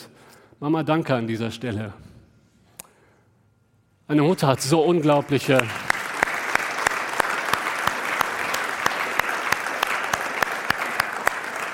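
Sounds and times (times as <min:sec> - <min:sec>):
speech: 0:00.6 - 0:02.1, 0:04.1 - 0:05.9
audience applause: 0:05.0 - 0:11.7.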